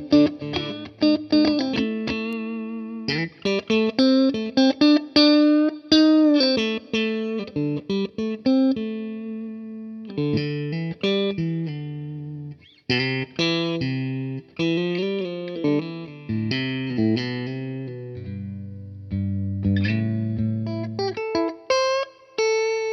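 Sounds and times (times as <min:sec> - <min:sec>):
clean electric guitar on neck and middle pickups: 0:00.0 - 0:22.9.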